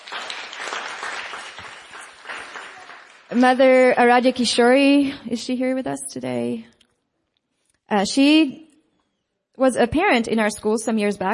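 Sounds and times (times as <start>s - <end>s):
audience applause: 0.0s - 4.1s
speech: 3.3s - 6.7s, 7.9s - 8.7s, 9.6s - 11.3s.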